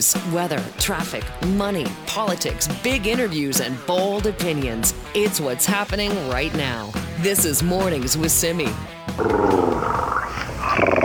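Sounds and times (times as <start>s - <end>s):
speech: 0.0s - 11.0s
voice imitating a purring kitten: 9.2s - 11.0s.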